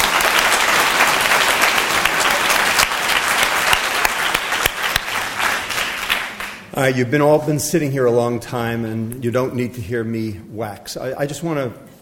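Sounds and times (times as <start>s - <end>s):
crowd applauding: 0.0s - 7.0s
speech: 6.8s - 11.9s.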